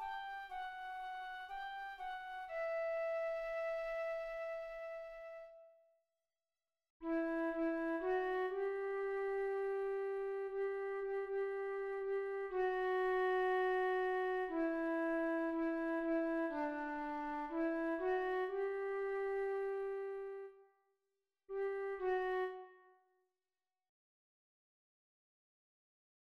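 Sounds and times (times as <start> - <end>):
flute: 0.0 - 5.8, 7.0 - 20.6, 21.6 - 23.0.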